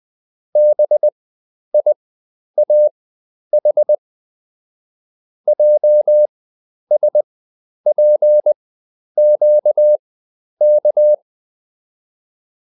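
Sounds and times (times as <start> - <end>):
morse code beeps: 0.6 - 1.1, 2.6 - 2.9, 5.5 - 6.3, 6.9 - 7.2, 7.9 - 8.6, 9.2 - 10.0, 10.6 - 11.2.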